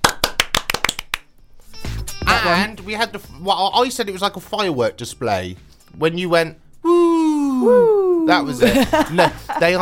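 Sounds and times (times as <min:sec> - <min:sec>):
people clapping: 0:00.0 - 0:01.3
speech: 0:02.4 - 0:06.6, 0:07.6 - 0:09.8
people making stupid noises: 0:06.8 - 0:08.6
laughter: 0:08.5 - 0:09.8.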